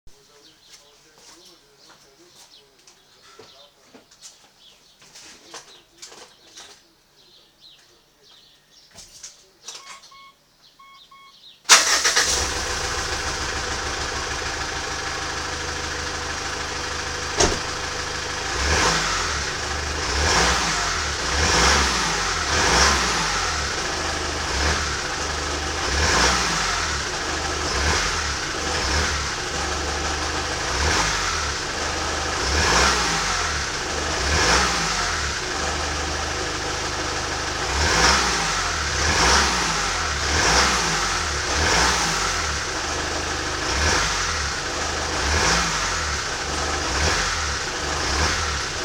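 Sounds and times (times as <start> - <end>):
exhaust: 11.7 - 48.8.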